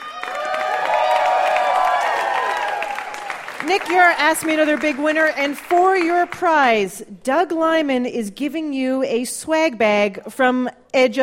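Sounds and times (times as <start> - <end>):
studio audience cheering and whooping: 0.0 - 4.2
studio audience applause: 0.0 - 6.5
speech: 3.7 - 11.2.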